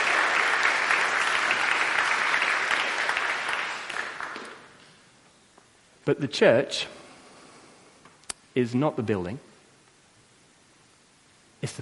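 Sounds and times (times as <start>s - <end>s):
audience applause for a volunteer: 0.0s - 4.8s
speech: 6.1s - 7.0s, 8.6s - 9.5s.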